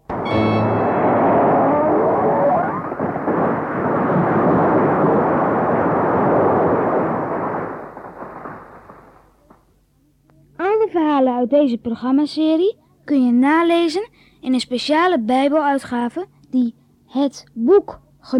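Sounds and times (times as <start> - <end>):
thunderous roar of temple roof collapsing: 0.0 - 9.6
speech: 11.5 - 18.3.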